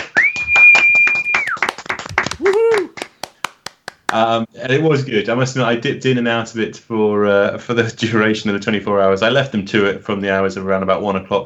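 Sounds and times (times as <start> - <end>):
sustained whistled tone: 0.0 - 1.7
hand claps in praise of a charity fundraiser's total: 0.0 - 4.2
speech: 4.1 - 11.4.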